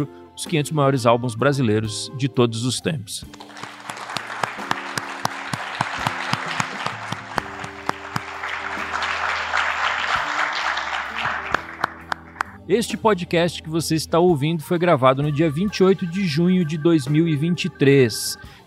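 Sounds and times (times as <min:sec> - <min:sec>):
speech: 0:00.0 - 0:03.7, 0:12.7 - 0:18.6
audience applause: 0:03.3 - 0:12.6.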